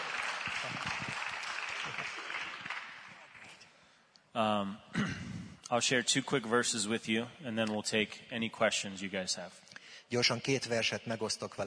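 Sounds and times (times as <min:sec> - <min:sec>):
crowd applauding: 0:00.0 - 0:03.6
speech: 0:04.4 - 0:11.6.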